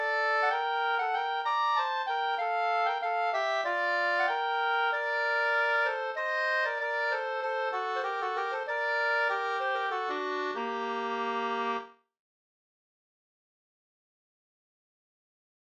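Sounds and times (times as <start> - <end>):
two-part polska: 0.0 - 11.8.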